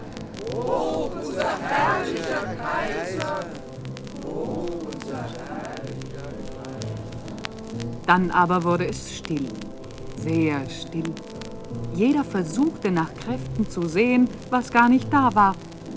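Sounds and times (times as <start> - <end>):
crowd cheering and shouting: 0.0 - 3.6, 4.2 - 6.0
speech: 0.4 - 3.6, 8.1 - 15.7.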